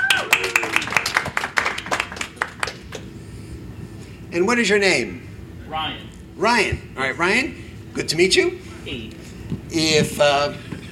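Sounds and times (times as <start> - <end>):
audience clapping welcoming a volunteer onto a stage: 0.0 - 3.1
speech: 4.4 - 10.7.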